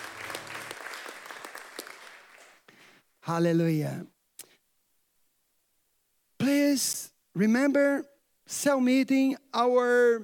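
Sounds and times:
audience applauding: 0.0 - 2.7
speech: 3.3 - 4.1, 6.7 - 10.2.

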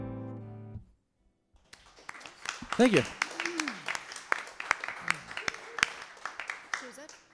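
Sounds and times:
audience applause: 1.6 - 7.3
speech: 2.8 - 3.2.

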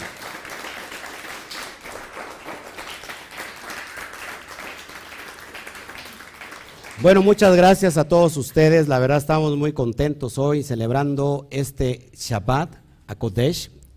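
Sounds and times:
audience applause: 0.0 - 7.3
speech: 7.0 - 13.9.

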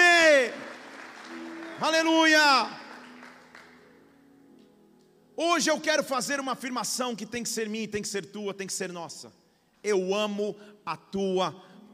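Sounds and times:
audience applauding: 0.0 - 4.0
speech: 1.8 - 2.8, 5.4 - 11.7.

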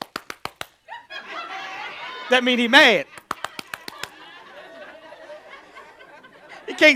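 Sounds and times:
loud sharp hand claps: 0.0 - 0.8, 3.1 - 4.3
laughter: 0.9 - 6.9
speech: 2.3 - 3.2, 6.8 - 6.9.

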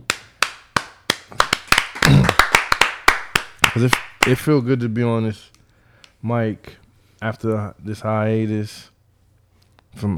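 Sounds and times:
hand clapping: 0.0 - 4.4
speech: 3.8 - 5.6, 6.2 - 8.9, 10.0 - 10.1.

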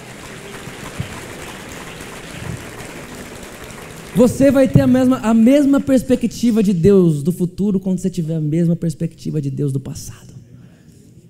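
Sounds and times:
audience applause: 0.0 - 5.8
speech: 4.2 - 10.3.

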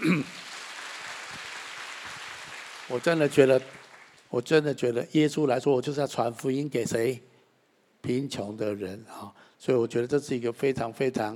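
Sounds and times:
audience applause: 0.2 - 4.3
speech: 2.9 - 7.3, 8.0 - 11.3.

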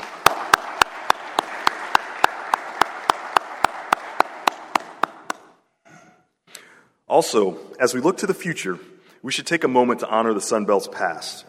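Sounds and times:
round of applause for football coaches and student athletes: 0.0 - 5.5
speech: 7.1 - 11.4.

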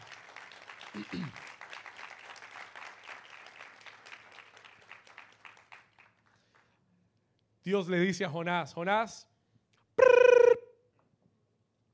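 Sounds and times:
audience applause: 0.0 - 6.6
speech: 1.0 - 1.6, 7.6 - 9.3
person shouting: 10.0 - 10.7.

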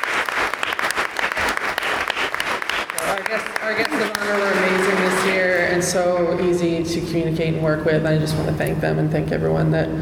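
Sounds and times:
audience applause at a community event: 0.0 - 5.8
speech: 3.3 - 9.9.

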